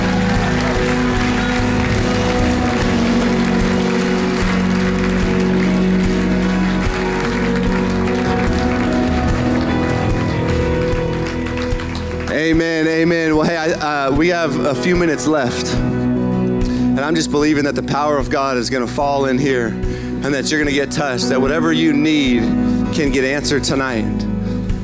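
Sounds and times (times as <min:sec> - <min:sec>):
crowd cheering and applauding: 0:00.0 - 0:16.6
speech: 0:14.3 - 0:16.0, 0:17.0 - 0:24.3.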